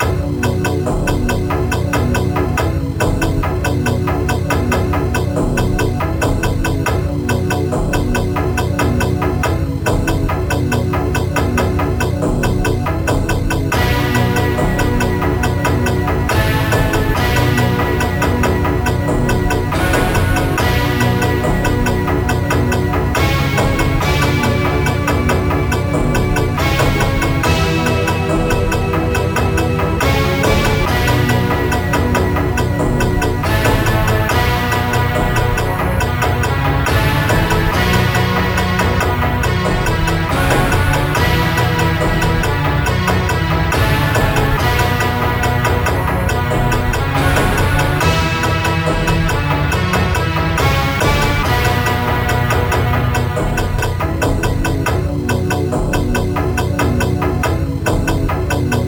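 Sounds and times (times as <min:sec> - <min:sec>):
dramatic music interlude: 0:00.0 - 0:58.8.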